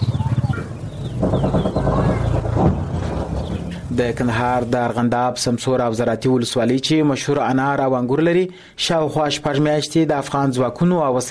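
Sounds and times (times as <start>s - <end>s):
steady low rumble: 0.0s - 5.0s
birds chirping and clucking in a war-affected farming area: 0.0s - 5.1s
speech: 4.0s - 11.2s.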